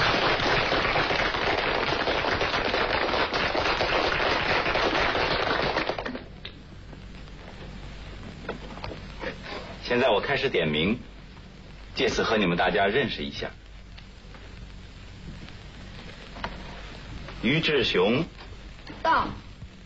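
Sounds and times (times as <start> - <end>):
classroom applause: 0.0 - 6.3
speech: 9.9 - 11.1, 12.0 - 13.6, 17.4 - 18.4, 19.0 - 19.4.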